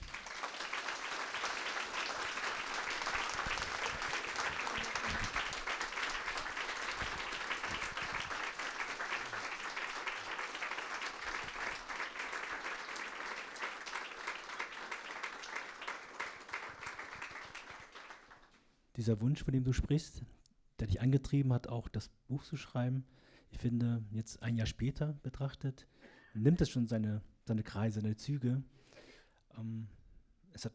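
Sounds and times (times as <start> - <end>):
audience applause: 0.0 - 18.5
speech: 19.0 - 28.9, 29.6 - 30.0, 30.6 - 30.7.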